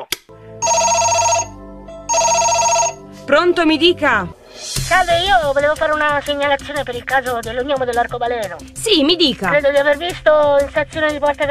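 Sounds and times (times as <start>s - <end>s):
telephone ringing: 0.6s - 3.0s
speech: 3.3s - 11.4s.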